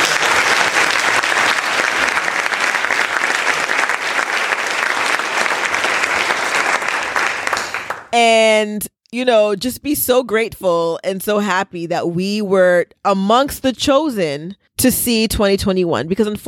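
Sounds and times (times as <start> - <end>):
round of applause: 0.0 - 8.2
speech: 8.2 - 16.4.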